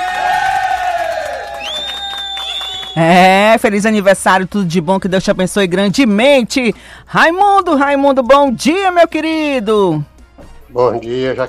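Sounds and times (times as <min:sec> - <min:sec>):
loud crowd cheering and applauding: 0:00.0 - 0:03.2
speech: 0:03.0 - 0:10.1, 0:10.7 - 0:11.4.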